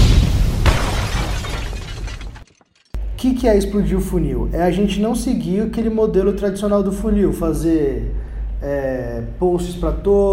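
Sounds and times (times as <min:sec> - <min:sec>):
bomb explosion sound effect: 0:00.0 - 0:02.4
crackling, shattering debris: 0:00.0 - 0:03.0
speech: 0:03.2 - 0:10.3.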